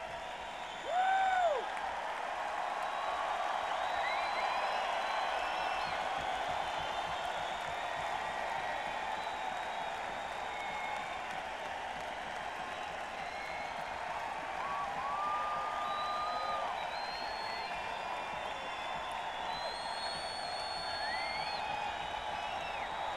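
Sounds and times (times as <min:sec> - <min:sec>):
crowd: 0:00.0 - 0:23.1.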